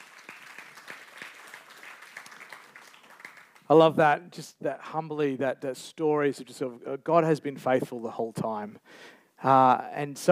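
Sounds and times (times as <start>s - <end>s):
crowd clapping: 0.0s - 3.9s
speech: 3.7s - 10.3s.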